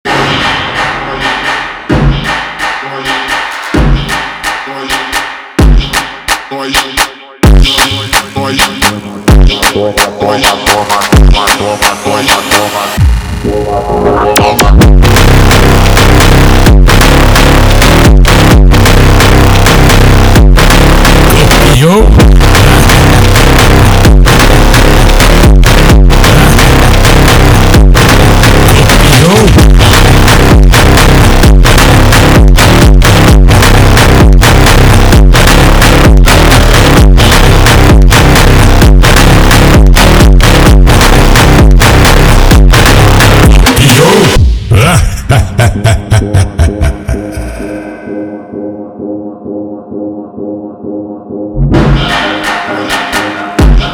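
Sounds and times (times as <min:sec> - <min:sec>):
pumping funk music: 0:00.1 - 0:47.8, 0:51.6 - 0:53.9
laughter: 0:44.7 - 0:48.0.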